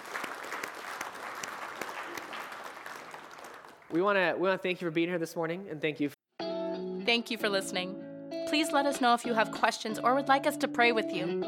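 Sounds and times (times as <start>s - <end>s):
audience applause: 0.0s - 4.2s
speech: 3.9s - 6.2s, 7.1s - 11.4s.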